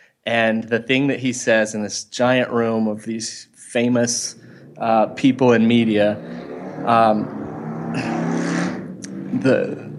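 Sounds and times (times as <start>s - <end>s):
speech: 0.2s - 8.2s, 9.3s - 9.9s
motorcycle passing by: 4.0s - 9.9s.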